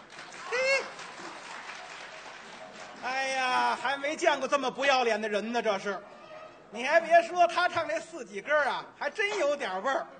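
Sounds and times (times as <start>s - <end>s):
audience applause: 0.0s - 3.8s
person cheering: 0.4s - 1.0s
speech: 4.1s - 6.1s, 6.7s - 10.1s.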